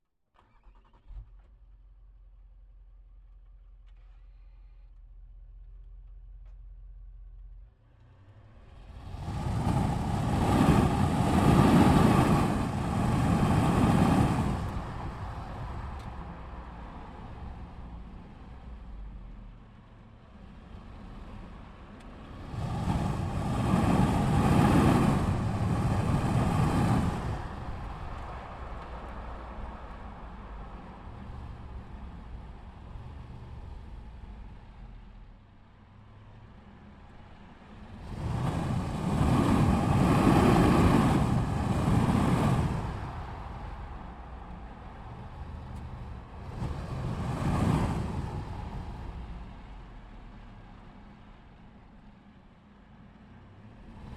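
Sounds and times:
Range Rover SDV8 exhaust while starting, driving, circling and stopping: 0:02.2 - 0:52.3.

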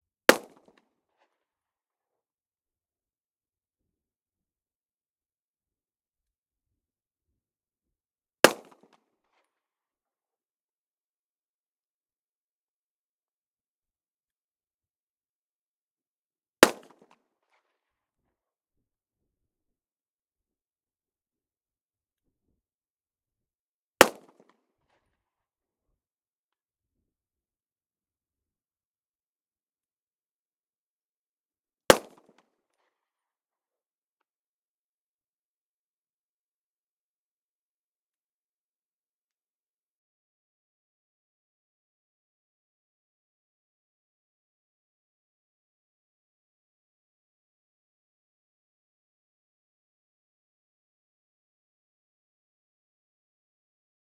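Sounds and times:
Walther P38 semi automatic pistol firing: 0:00.3 - 0:00.6, 0:08.5 - 0:08.9, 0:16.6 - 0:17.2, 0:24.0 - 0:24.5, 0:31.9 - 0:32.3.

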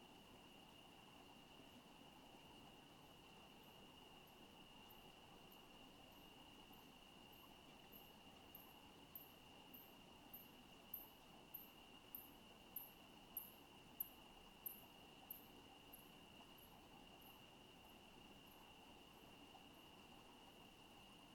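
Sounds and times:
crickets chirping at night in a residential area: 0:00.0 - 0:21.3.

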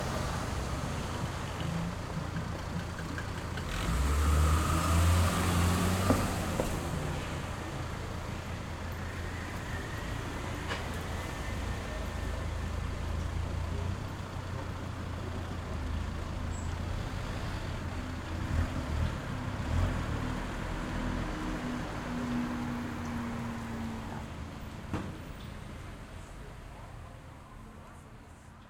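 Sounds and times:
cars on a city street: 0:00.0 - 0:28.5.

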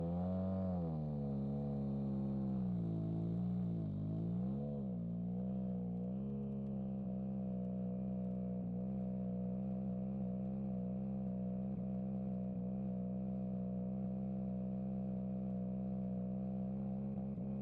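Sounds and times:
Ford Puma Hybrid Rally1 2022 WRC car exhaust onboard driving and launch control: 0:00.0 - 0:17.6.

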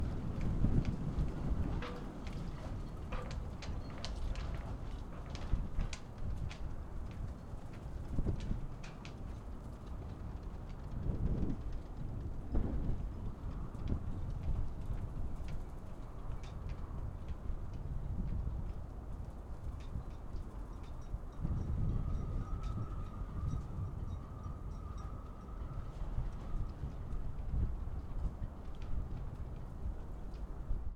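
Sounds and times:
wind buffeting at a marina: 0:00.0 - 0:30.9
boat masts clanking at a marina: 0:01.7 - 0:05.5.

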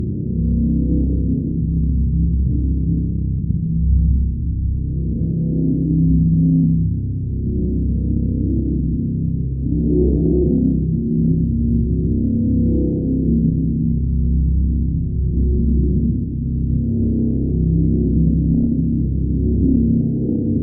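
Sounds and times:
dark drone with deep waves: 0:00.0 - 0:20.6.

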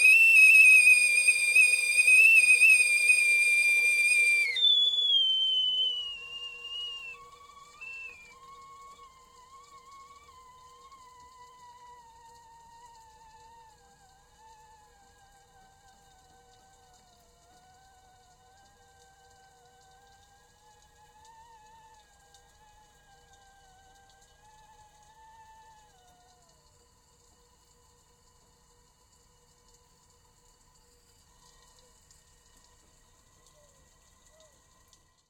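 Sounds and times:
kettle whistling with steam surge: 0:00.0 - 0:12.1.

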